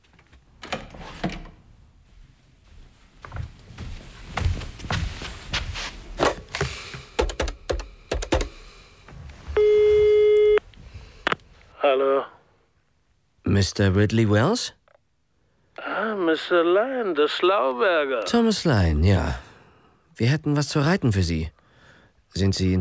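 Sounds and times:
mechanical clicks and clatters from dialing a telephone: 0:06.5 - 0:08.6
steady buzzing electronic tone on the telephone line: 0:09.4 - 0:12.4
speech: 0:13.6 - 0:14.8, 0:16.2 - 0:19.5, 0:20.2 - 0:21.6, 0:22.3 - 0:22.7.

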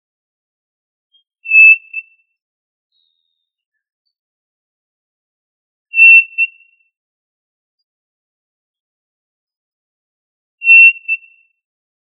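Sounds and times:
tinamou whistles: 0:01.1 - 0:02.3, 0:05.9 - 0:06.9, 0:10.6 - 0:11.6.

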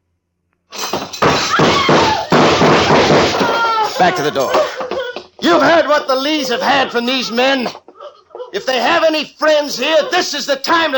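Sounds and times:
table being overturned: 0:00.8 - 0:06.1
laughter: 0:01.7 - 0:10.9
speech: 0:04.0 - 0:04.8, 0:05.4 - 0:07.8, 0:08.5 - 0:10.9.

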